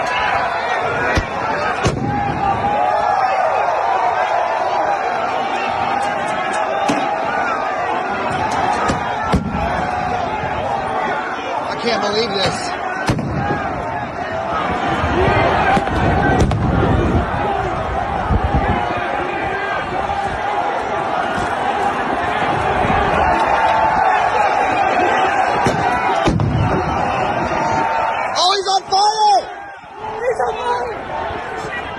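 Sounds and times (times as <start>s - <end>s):
crowd roaring and shouting: 0.0s - 31.9s
flashbang grenades exploding in crowd: 1.2s - 2.2s.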